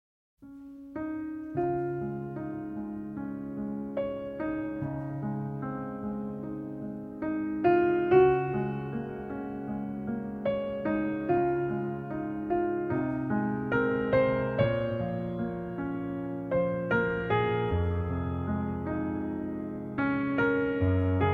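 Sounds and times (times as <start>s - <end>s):
piano music: 0.4s - 21.3s.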